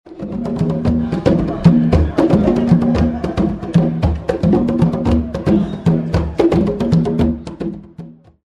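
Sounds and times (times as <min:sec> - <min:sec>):
drums: 0:00.1 - 0:08.3.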